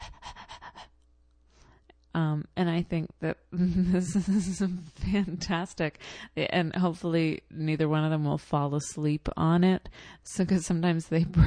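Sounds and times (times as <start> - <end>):
squeezed toy puppy making dog sounds: 0.0 - 0.9
speech: 2.2 - 11.4.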